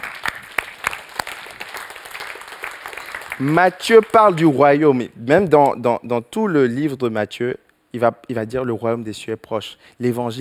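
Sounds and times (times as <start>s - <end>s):
audience applause: 0.0s - 4.5s
speech: 3.4s - 10.3s.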